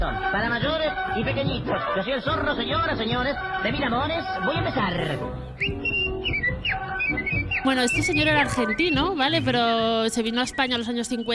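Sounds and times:
speech: 0.4 - 5.9, 7.6 - 11.3
virtuoso whistled melody: 5.3 - 11.3.

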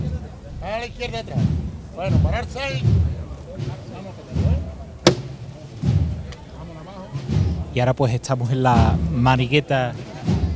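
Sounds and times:
speech: 0.6 - 4.5, 7.2 - 10.4
deep muffled procession drum beats: 1.4 - 6.3
sharp click: 5.1 - 5.4.

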